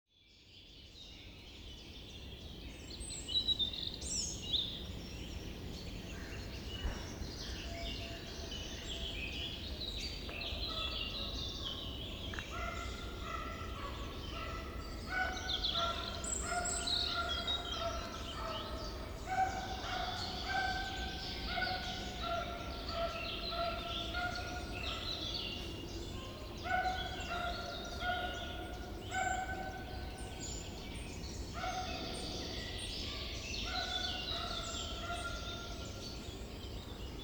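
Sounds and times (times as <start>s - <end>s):
forest ambience: 1.9s - 37.2s.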